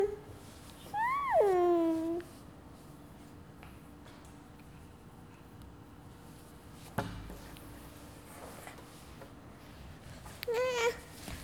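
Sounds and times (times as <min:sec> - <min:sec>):
baby voice: 0:00.9 - 0:02.3, 0:10.5 - 0:11.0.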